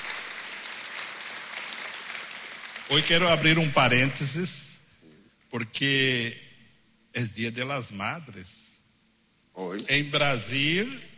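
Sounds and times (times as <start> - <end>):
church congregation applauding: 0.0 - 4.1
speech: 2.9 - 4.7, 5.5 - 6.4, 7.1 - 8.6, 9.6 - 11.1.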